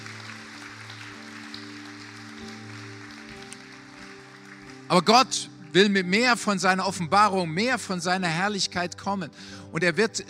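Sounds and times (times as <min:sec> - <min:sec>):
audience applauding: 0:00.0 - 0:06.2
speech: 0:04.9 - 0:10.2.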